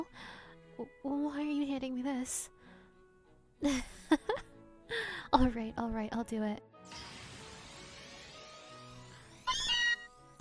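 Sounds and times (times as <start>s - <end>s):
speech: 0.0s - 2.6s, 3.6s - 7.1s
Meowth meowing: 9.5s - 10.1s.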